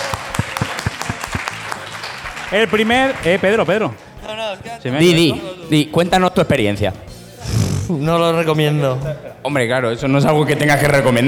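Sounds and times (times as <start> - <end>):
applause: 0.0 - 4.0
speech: 2.5 - 11.2.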